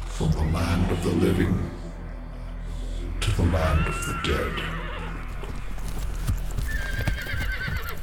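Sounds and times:
speech: 0.2 - 1.8, 3.4 - 4.8
horse neighing: 3.7 - 5.3, 6.6 - 8.0
horse hooves clopping: 5.1 - 8.0.

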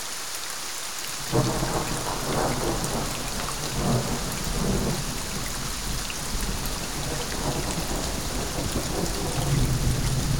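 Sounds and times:
thunderstorm: 1.2 - 10.3.

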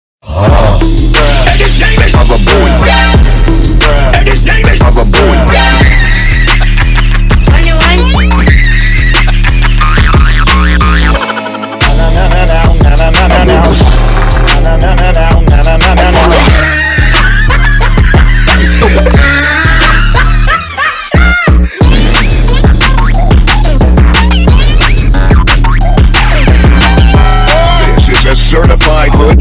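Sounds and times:
phonk beat: 0.5 - 29.3
laughter: 16.4 - 21.8.

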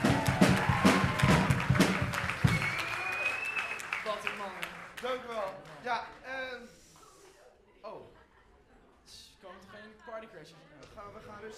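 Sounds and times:
audience applause: 0.0 - 5.8.

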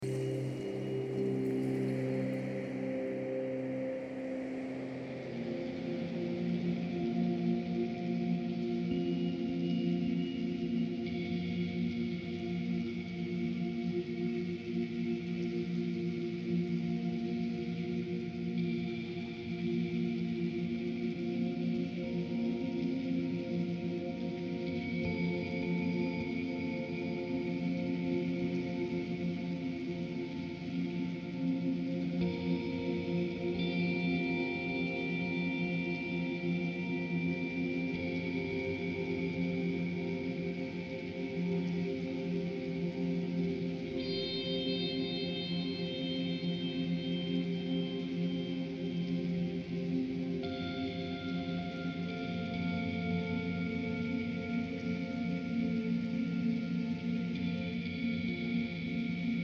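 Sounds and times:
Zen meditation music: 0.0 - 59.4.

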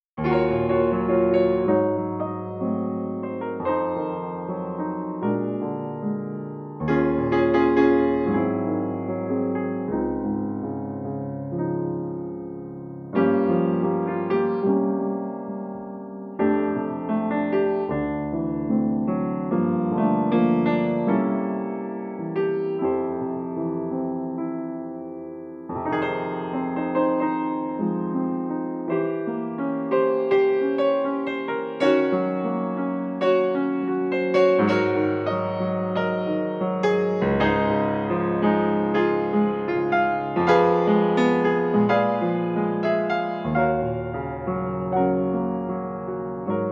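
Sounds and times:
soft jazz piano music: 0.1 - 46.7.

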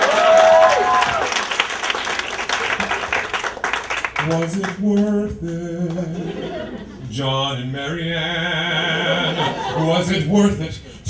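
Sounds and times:
audience applause: 0.0 - 5.1
speech: 4.3 - 11.0
laughter: 5.8 - 7.2, 8.6 - 10.3.

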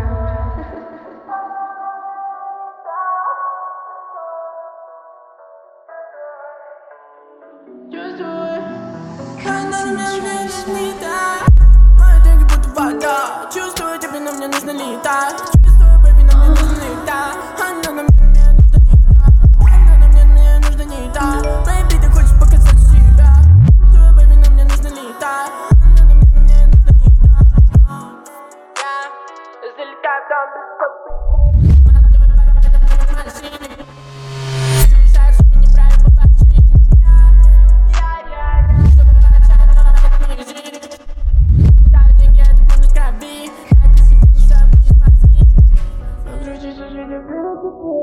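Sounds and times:
slow bass-boosted music: 11.5 - 13.7, 15.5 - 25.0, 25.7 - 28.0, 31.3 - 40.4, 41.2 - 46.6.

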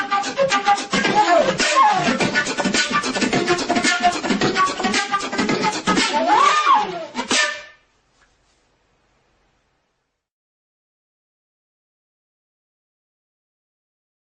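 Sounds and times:
flute beatboxing: 0.0 - 7.8.

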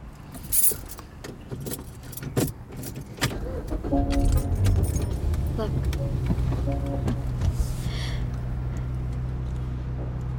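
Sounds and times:
keys jingling: 0.3 - 1.0, 1.6 - 3.1, 4.1 - 5.6
car engine cranking and catching: 0.3 - 10.3
speech: 5.6 - 7.3.

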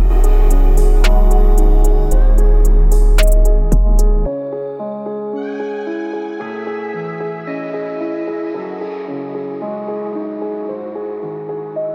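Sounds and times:
low bass tones at 33, 35 and 37 Hz: 0.0 - 4.3.

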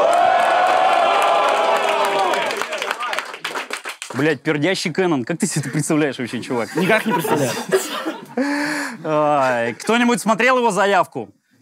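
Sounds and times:
crowd cheering and whooping: 0.0 - 2.9
speech: 4.2 - 11.4
laughter: 5.5 - 10.1.

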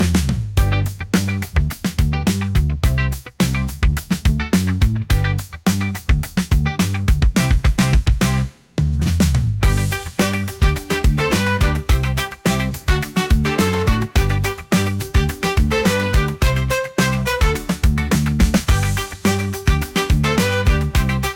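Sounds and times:
happy upbeat funk groove: 0.0 - 21.3.

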